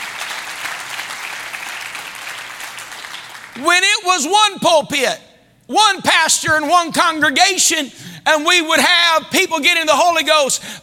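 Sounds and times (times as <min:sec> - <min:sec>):
audience clapping: 0:00.0 - 0:03.6
speech: 0:03.6 - 0:10.8.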